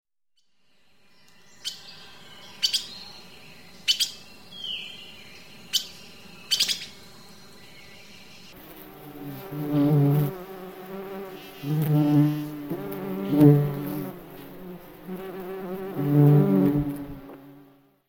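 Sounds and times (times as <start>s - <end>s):
bird chirps and whistle: 0.4s - 8.6s
loud low insect buzzing: 4.2s - 18.0s.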